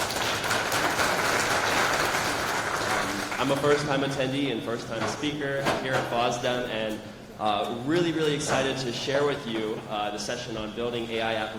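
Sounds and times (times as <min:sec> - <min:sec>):
audience applause: 0:00.0 - 0:03.6
speech: 0:03.4 - 0:11.5.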